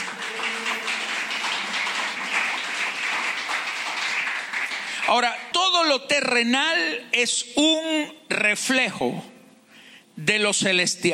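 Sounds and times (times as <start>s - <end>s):
audience applause: 0.0s - 5.3s
speech: 5.1s - 9.3s, 10.2s - 11.1s.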